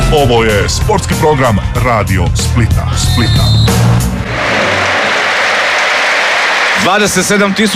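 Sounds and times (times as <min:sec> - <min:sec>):
speech: 0:00.1 - 0:04.6, 0:06.8 - 0:07.7
stadium crowd at a football match applauding a substituted goal scorer: 0:04.2 - 0:07.7.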